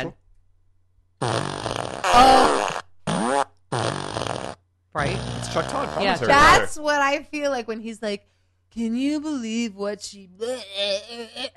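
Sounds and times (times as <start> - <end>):
speech: 0.0 - 0.2, 1.2 - 2.6, 5.0 - 11.5
fart machine blasts: 1.2 - 6.6.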